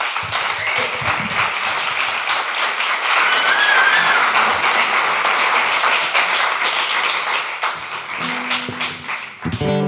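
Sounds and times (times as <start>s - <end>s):
audience applause: 0.0s - 9.7s.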